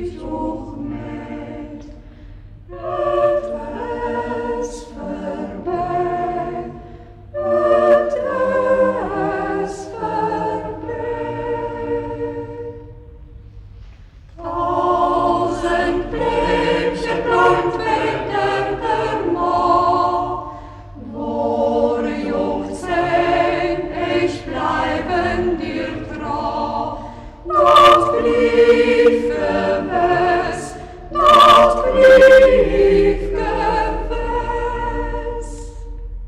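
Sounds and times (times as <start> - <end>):
chamber choir singing in Schässburg: 0.0 - 13.4, 14.4 - 36.2.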